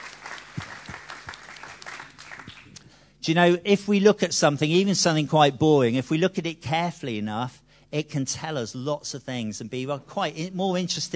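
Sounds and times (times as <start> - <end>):
audience clapping: 0.0 - 2.9
speech: 3.2 - 11.1.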